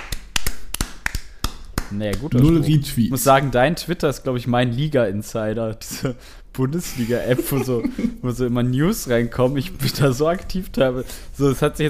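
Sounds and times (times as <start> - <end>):
hand clapping: 0.0 - 2.6
speech: 1.9 - 11.8
laughter: 6.8 - 8.4.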